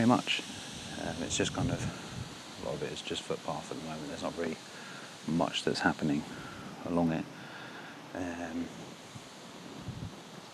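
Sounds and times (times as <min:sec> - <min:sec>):
strong wind blowing across open marshland: 0:00.0 - 0:03.1, 0:09.6 - 0:10.2
speech: 0:00.0 - 0:07.4, 0:08.1 - 0:08.9.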